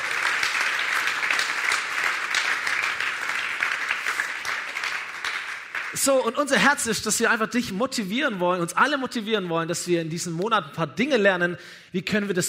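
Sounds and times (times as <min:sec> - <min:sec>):
audience applause: 0:00.0 - 0:06.1
speech: 0:05.9 - 0:12.4.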